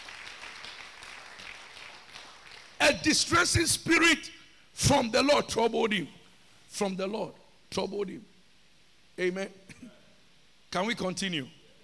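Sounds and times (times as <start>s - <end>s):
congregation clapping hands during a church service: 0.0s - 3.3s
speech: 2.9s - 8.3s, 9.2s - 10.0s, 10.7s - 11.6s.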